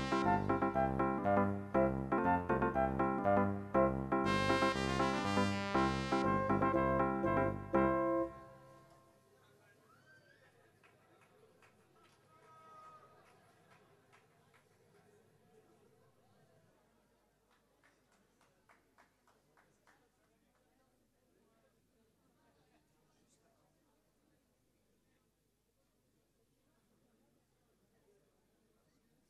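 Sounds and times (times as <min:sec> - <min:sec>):
synthesizer demo: 0:00.0 - 0:08.4.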